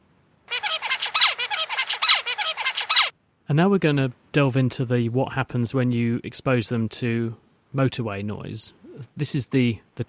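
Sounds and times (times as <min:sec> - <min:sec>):
juvenile songbird song raised in quiet room: 0:00.5 - 0:03.1
speech: 0:03.5 - 0:10.0.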